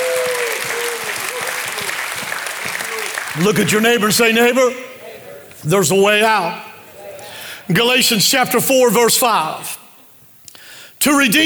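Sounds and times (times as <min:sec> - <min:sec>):
audience clapping: 0:00.0 - 0:05.6
speech: 0:03.4 - 0:04.9, 0:05.6 - 0:06.7, 0:07.7 - 0:09.8, 0:11.0 - 0:11.4.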